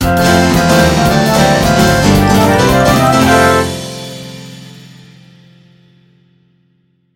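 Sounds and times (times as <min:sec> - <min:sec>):
game completion jingle: 0:00.0 - 0:04.1.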